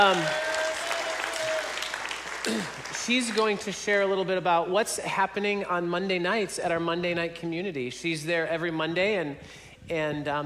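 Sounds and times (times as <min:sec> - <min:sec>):
speech: 0:00.0 - 0:00.4, 0:02.4 - 0:10.4
audience applause: 0:00.0 - 0:03.3.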